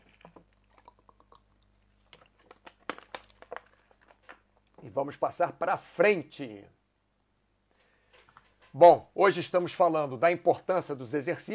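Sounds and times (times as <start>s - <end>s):
person taking a sip of water: 0.0s - 4.8s
speech: 4.8s - 6.8s, 8.8s - 11.5s.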